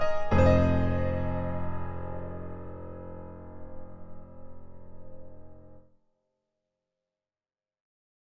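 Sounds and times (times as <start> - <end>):
shimmering Steinway piano: 0.0 - 5.8.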